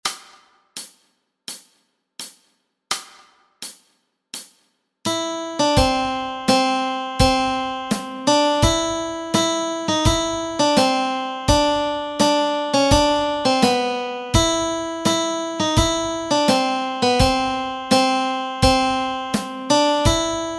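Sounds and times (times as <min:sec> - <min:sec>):
melody: 0:05.1 - 0:20.5.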